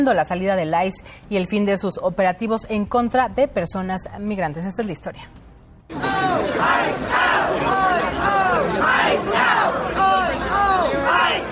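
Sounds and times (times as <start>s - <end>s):
speech: 0.0s - 10.1s
crowd of protesters chanting: 5.9s - 11.5s.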